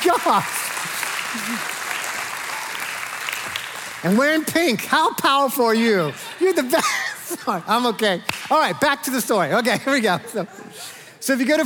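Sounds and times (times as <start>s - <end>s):
audience applause welcoming home a man back from military deployment: 0.0s - 4.7s
speech: 0.1s - 0.6s, 1.3s - 1.8s, 4.0s - 11.6s
laughter: 1.3s - 1.8s, 6.0s - 8.2s, 9.6s - 11.1s.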